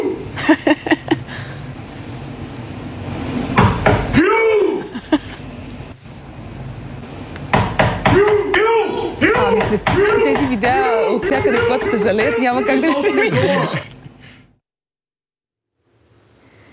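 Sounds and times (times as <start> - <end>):
laughter: 0.4 - 1.6, 4.8 - 5.4, 9.5 - 14.4
knocking on a hotel door: 3.6 - 4.2, 7.5 - 8.7, 9.3 - 12.4
speech: 12.1 - 13.9.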